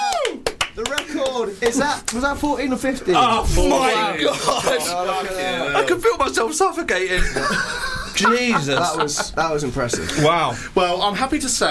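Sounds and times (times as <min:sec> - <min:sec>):
round of applause: 0:00.0 - 0:01.4
speech: 0:01.4 - 0:11.7
laughter: 0:04.0 - 0:05.3, 0:07.1 - 0:10.6.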